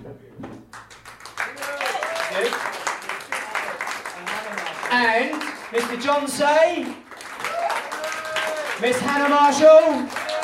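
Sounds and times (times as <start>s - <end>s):
crowd applause: 0.7s - 10.4s
voices and whoops: 1.5s - 2.5s, 7.4s - 8.8s, 10.1s - 10.4s
speech: 5.0s - 7.0s, 8.8s - 10.2s.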